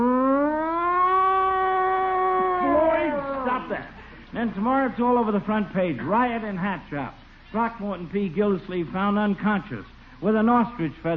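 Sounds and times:
police riot squad siren wailing: 0.0s - 3.9s
speech: 3.7s - 11.1s.

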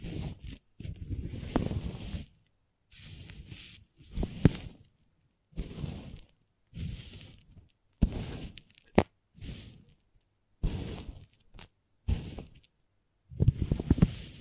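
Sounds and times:
crayons scraping and scratching across a surface: 0.0s - 4.9s, 5.5s - 10.0s, 10.6s - 12.7s, 13.4s - 14.4s.

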